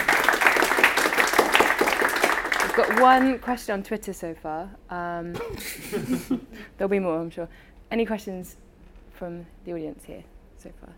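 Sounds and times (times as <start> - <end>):
audience applause: 0.0 - 3.5
speech: 2.8 - 8.6, 9.2 - 10.9
laughter: 5.4 - 6.6.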